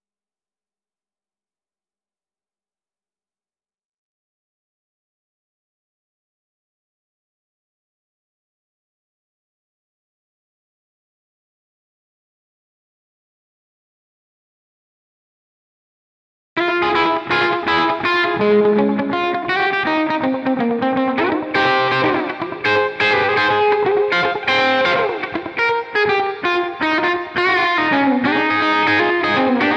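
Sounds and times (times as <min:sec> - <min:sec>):
guitar melody: 0:16.6 - 0:29.7.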